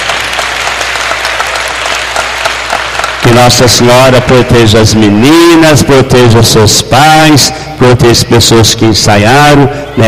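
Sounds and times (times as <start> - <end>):
audience applause: 0.0 - 3.9
speech: 3.4 - 10.0.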